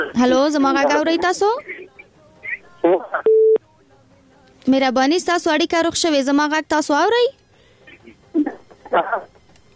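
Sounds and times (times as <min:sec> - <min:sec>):
speech: 0:00.1 - 0:01.7, 0:02.8 - 0:03.3, 0:04.7 - 0:07.4, 0:08.9 - 0:09.3
telephone line electronic tone on a radio call-in show: 0:03.2 - 0:03.6.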